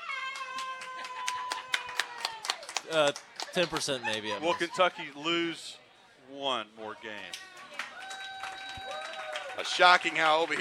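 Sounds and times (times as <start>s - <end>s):
audience clapping: 0.2s - 4.3s, 7.4s - 10.5s
speech: 2.9s - 7.5s, 9.6s - 10.5s
laughter: 3.5s - 5.6s.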